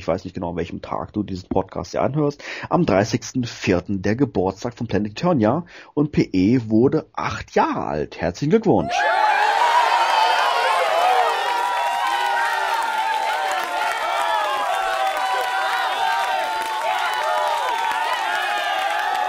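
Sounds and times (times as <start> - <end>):
speech: 0.0 - 9.4
crowd cheering and shrieking: 8.8 - 19.2.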